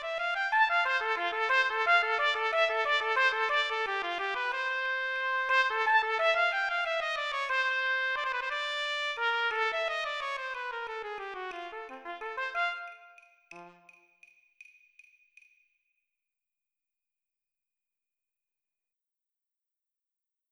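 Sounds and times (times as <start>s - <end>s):
trumpet playing along at 60 BPM: 0.0s - 14.0s.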